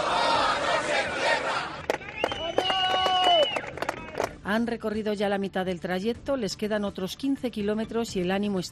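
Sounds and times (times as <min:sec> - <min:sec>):
protest marchers shouting chants: 0:00.0 - 0:01.8
sustained whistles or horns: 0:02.1 - 0:03.7
speech: 0:04.5 - 0:08.7.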